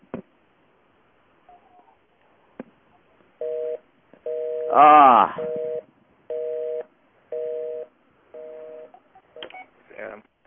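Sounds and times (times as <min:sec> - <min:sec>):
long telephone tones on a calling card call: 0:03.4 - 0:09.6
speech: 0:04.7 - 0:05.6.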